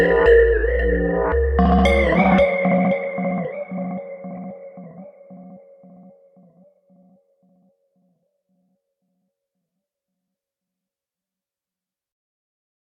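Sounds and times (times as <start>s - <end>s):
synth bell: 0.0s - 6.2s.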